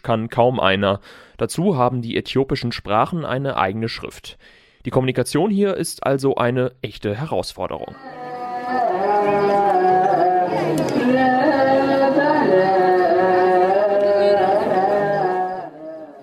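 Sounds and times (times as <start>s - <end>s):
speech: 0.0s - 9.6s
Ethiopian Orthodox church chanting: 7.9s - 16.2s.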